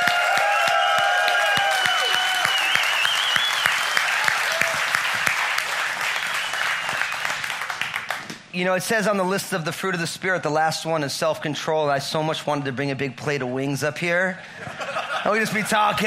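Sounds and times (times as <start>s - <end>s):
large crowd applauding: 0.0s - 8.3s
sharp whistles: 1.7s - 4.2s, 6.2s - 7.5s
speech: 8.6s - 16.0s
laughter: 14.4s - 16.0s.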